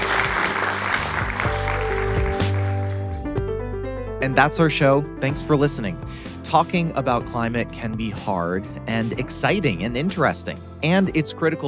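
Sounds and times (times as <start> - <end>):
applause: 0.0 - 3.2
speech: 4.2 - 11.6.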